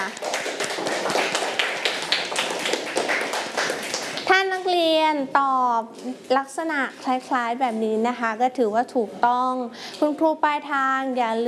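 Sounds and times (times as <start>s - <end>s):
classroom clapping: 0.0s - 4.7s
speech: 5.0s - 11.4s.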